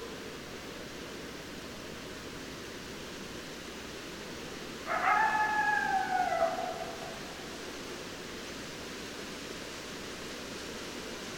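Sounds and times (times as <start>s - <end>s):
low hiss: 0.0s - 11.3s
coyote howling: 4.9s - 7.7s.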